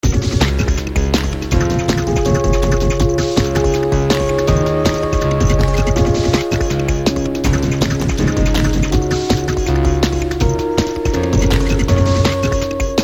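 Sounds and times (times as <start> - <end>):
soft IDM music: 0.0 - 13.0.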